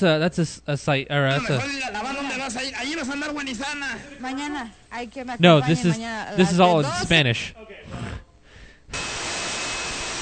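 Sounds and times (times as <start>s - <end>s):
speech: 0.0s - 8.0s
radio static while scanning stations: 1.3s - 8.0s.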